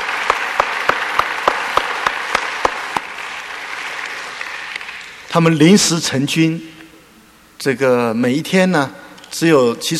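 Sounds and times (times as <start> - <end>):
audience applause: 0.0 - 5.3
speech: 5.3 - 6.8, 7.6 - 9.9.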